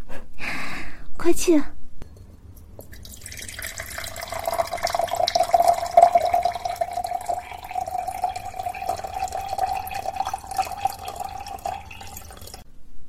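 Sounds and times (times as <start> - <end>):
speech: 1.2 - 1.8
water being poured into a glass: 2.6 - 12.6.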